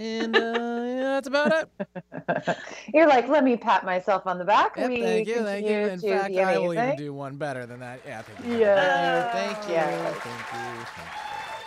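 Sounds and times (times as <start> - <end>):
laughter: 0.0 - 2.8, 4.8 - 11.6
speech: 0.0 - 11.3
soundboard applause sound effect: 6.8 - 11.6.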